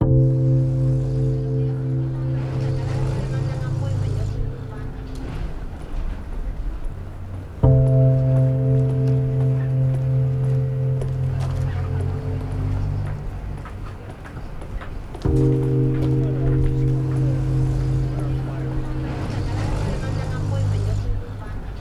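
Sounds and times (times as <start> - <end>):
city sounds: 0.0 - 21.7.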